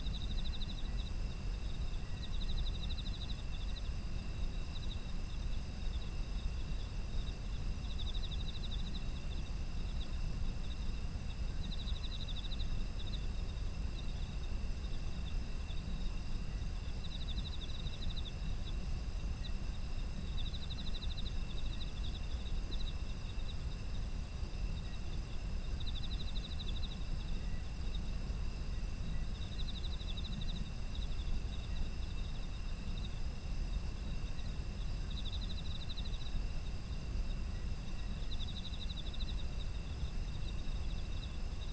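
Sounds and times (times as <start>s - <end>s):
insects chirping: 0.0s - 41.7s.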